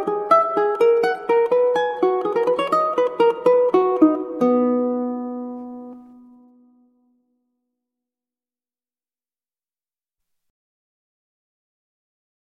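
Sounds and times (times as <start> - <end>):
classical ukulele piece: 0.0 - 7.2.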